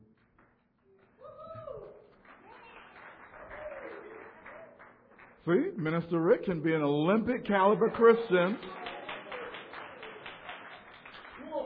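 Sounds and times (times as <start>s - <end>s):
audience applause: 2.3s - 5.4s, 7.5s - 11.6s
speech: 5.5s - 8.8s.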